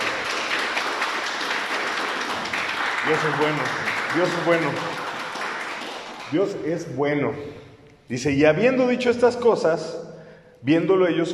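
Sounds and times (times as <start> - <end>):
audience applauding: 0.0 - 6.8
speech: 3.0 - 5.0, 6.3 - 10.0, 10.6 - 11.3.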